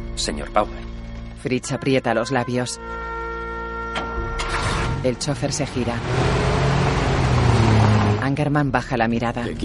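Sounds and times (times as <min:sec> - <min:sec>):
speech: 0:00.2 - 0:00.8, 0:01.4 - 0:03.0, 0:05.0 - 0:06.4, 0:08.4 - 0:09.6
car driving away from the building: 0:04.3 - 0:08.5.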